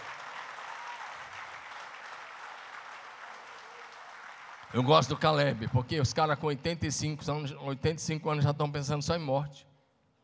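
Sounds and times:
audience applause: 0:00.0 - 0:05.8
speech: 0:04.7 - 0:09.7.

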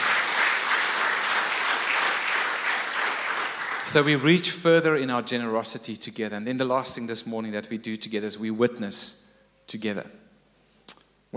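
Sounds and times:
audience applause: 0:00.0 - 0:04.4
speech: 0:03.9 - 0:10.2.

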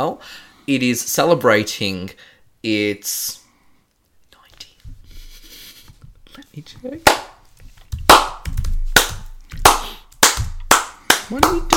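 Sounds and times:
speech: 0:00.0 - 0:03.4, 0:06.6 - 0:07.3, 0:11.3 - 0:11.7
slow hand claps: 0:07.0 - 0:11.7.

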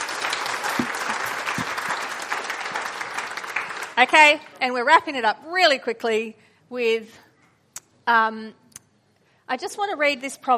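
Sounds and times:
audience applause: 0:00.0 - 0:04.6
speech: 0:04.0 - 0:07.2, 0:08.0 - 0:08.6, 0:09.5 - 0:10.5.

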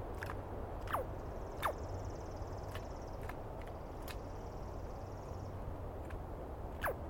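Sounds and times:
Douglas pine squirrel calling in the East Cascades: 0:00.2 - 0:05.5, 0:06.7 - 0:07.0.

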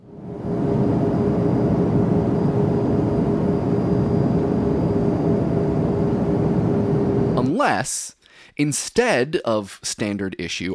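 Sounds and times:
airplane engine din in flight: 0:00.0 - 0:07.5
speech: 0:07.7 - 0:10.7.

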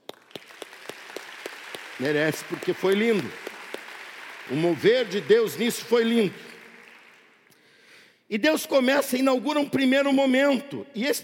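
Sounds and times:
audience applause: 0:00.0 - 0:07.5
speech: 0:02.0 - 0:03.4, 0:04.5 - 0:06.5, 0:08.3 - 0:11.2.

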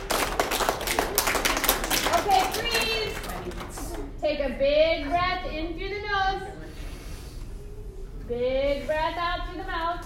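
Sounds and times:
hands clapping: 0:00.0 - 0:04.1
speech: 0:04.4 - 0:06.8, 0:08.3 - 0:10.0.

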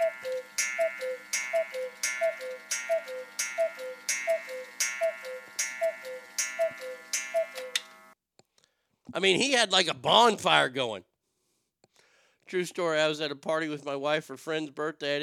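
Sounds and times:
cuckoo clock ticking: 0:00.0 - 0:08.1
speech: 0:09.2 - 0:11.1, 0:12.5 - 0:15.2.

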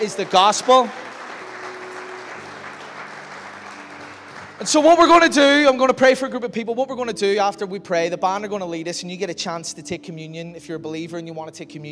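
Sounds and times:
speech: 0:00.0 - 0:01.1, 0:04.6 - 0:11.8
audience clapping: 0:00.0 - 0:05.8.

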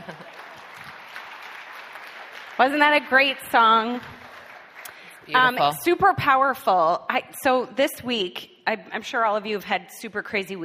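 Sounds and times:
audience clapping after a song: 0:00.0 - 0:05.8
speech: 0:02.6 - 0:04.2, 0:05.3 - 0:10.6.

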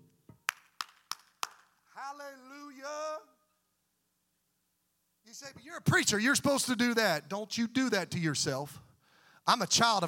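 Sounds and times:
hand claps: 0:00.3 - 0:01.8
speech: 0:02.1 - 0:03.3, 0:05.3 - 0:08.9, 0:09.5 - 0:10.0.

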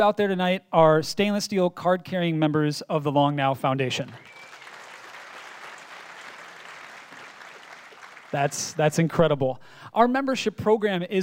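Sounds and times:
speech: 0:00.0 - 0:04.4, 0:08.3 - 0:11.2
audience applause: 0:04.2 - 0:09.1.

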